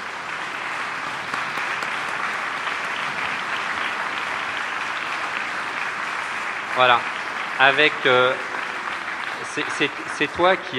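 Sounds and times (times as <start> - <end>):
audience applause: 0.0 - 10.7
speech: 6.8 - 8.5, 9.4 - 10.7.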